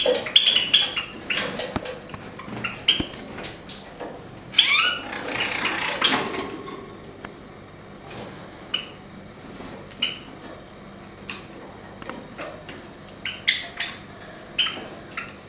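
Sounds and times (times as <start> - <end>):
Java sparrow Padda oryzivora singing: 0.0 - 1.6, 2.4 - 3.4, 4.5 - 6.1, 13.2 - 14.0, 14.6 - 15.4.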